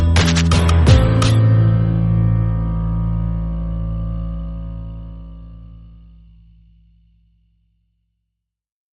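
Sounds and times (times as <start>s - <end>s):
backing track: 0.0s - 5.9s.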